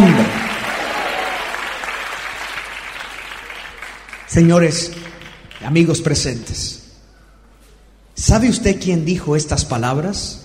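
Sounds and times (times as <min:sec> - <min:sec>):
audience applause: 0:00.0 - 0:05.8
speech: 0:04.3 - 0:05.0, 0:05.6 - 0:06.8, 0:08.2 - 0:10.4.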